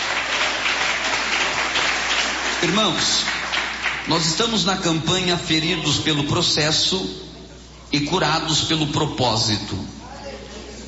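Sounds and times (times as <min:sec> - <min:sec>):
congregation clapping hands during a church service: 0:00.0 - 0:04.9
speech: 0:02.6 - 0:03.4, 0:04.0 - 0:07.2, 0:07.9 - 0:10.0.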